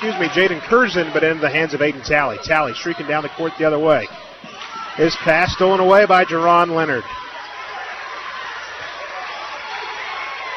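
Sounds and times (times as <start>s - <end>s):
speech: 0.0s - 4.3s, 5.0s - 7.2s
crowd applause and cheering: 0.0s - 10.5s.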